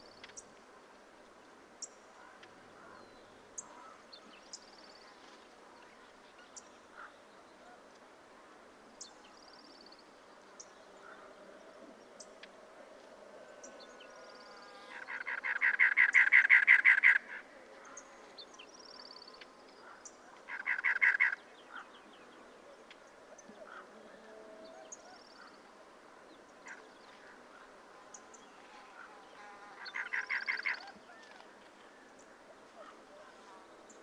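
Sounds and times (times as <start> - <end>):
cactus wren calling: 14.9 - 18.1, 19.8 - 21.8, 29.8 - 31.5.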